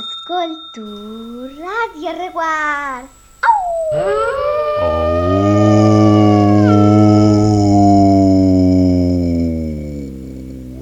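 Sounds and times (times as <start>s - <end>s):
speech: 0.4s - 1.3s, 1.9s - 3.2s
sled dog giving short wavering yelps: 3.4s - 5.6s, 6.2s - 7.2s
sled dog howling: 3.4s - 9.5s.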